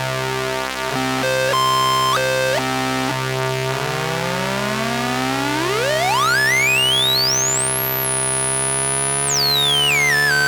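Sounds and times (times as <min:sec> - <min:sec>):
oscillator tones: 0:00.1 - 0:10.4.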